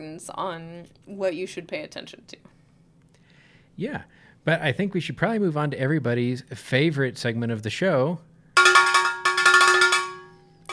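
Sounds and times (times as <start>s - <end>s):
speech: 0.0s - 2.5s, 3.8s - 8.3s
cowbell struck rapidly: 8.6s - 10.7s.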